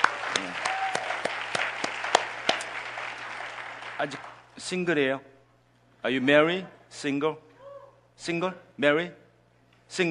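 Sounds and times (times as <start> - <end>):
audience applause: 0.0 - 4.5
speech: 4.0 - 5.3, 6.0 - 7.5, 8.2 - 9.2, 9.9 - 10.1.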